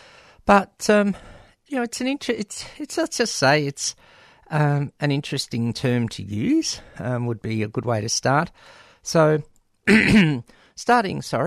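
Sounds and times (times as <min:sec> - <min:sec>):
speech: 0:00.5 - 0:11.4
radio presenter clearing his throat on air: 0:09.9 - 0:10.4.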